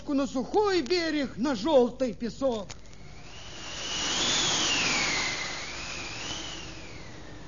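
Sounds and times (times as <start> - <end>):
speech: 0.1 - 2.8
strong wind roaring over a stormy sea: 3.0 - 7.4.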